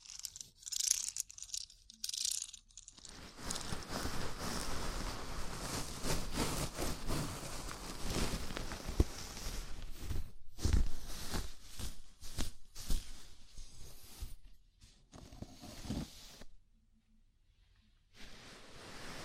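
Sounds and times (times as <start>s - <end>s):
fingers rubbing and scratching through hair in a scalp massage: 2.8s - 14.4s.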